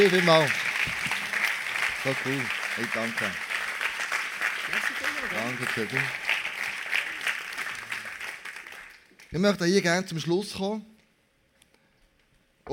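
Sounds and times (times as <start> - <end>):
speech: 0.0 - 1.0, 2.0 - 3.5, 5.2 - 6.2, 9.3 - 10.9
audience applause: 0.0 - 9.3.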